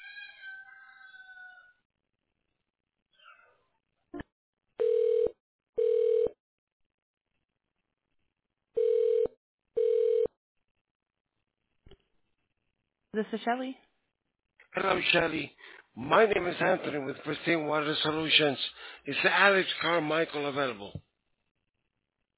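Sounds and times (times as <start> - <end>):
telephone ringback tone as the call connects: 4.8 - 6.4, 8.8 - 10.3
speech: 13.2 - 13.8, 14.8 - 21.1.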